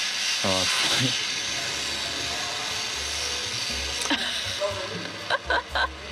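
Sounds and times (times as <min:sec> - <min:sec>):
vacuum cleaner running: 0:00.0 - 0:06.1
laughter: 0:04.0 - 0:06.1.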